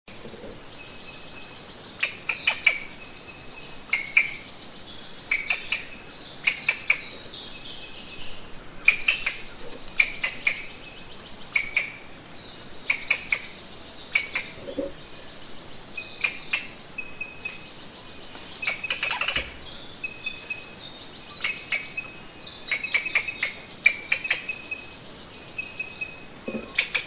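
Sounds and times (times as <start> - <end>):
high insect drone: 0.1 - 27.0
Thomas's rope squirrel clicking calls: 2.0 - 2.8, 3.9 - 4.4, 5.3 - 5.8, 6.4 - 7.2, 8.8 - 10.7, 11.5 - 12.0, 12.9 - 13.5, 14.1 - 14.9, 16.2 - 16.8, 18.6 - 19.6, 21.4 - 24.6, 26.7 - 27.0.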